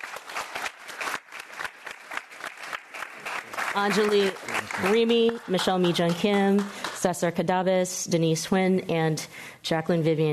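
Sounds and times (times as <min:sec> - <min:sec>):
audience applause: 0:00.0 - 0:07.1
speech: 0:03.8 - 0:10.3.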